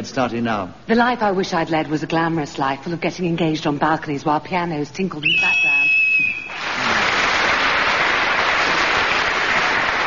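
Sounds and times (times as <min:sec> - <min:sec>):
speech: 0:00.1 - 0:05.6
slightly faulty game whistle blast: 0:05.2 - 0:06.6
audience applause: 0:06.5 - 0:10.0.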